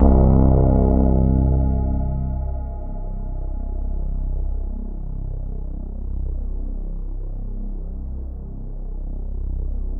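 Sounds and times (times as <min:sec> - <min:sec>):
synth line: 0:00.0 - 0:06.4.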